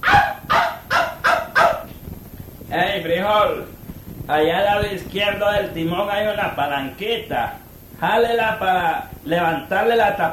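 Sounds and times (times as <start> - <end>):
dog barking: 0.0 - 2.0
speech: 4.3 - 10.3.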